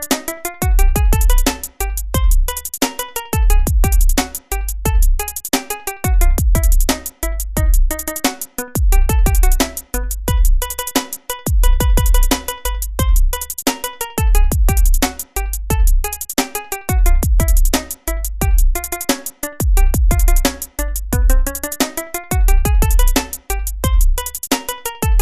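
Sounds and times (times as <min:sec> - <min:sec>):
circus beat: 0:00.0 - 0:25.1.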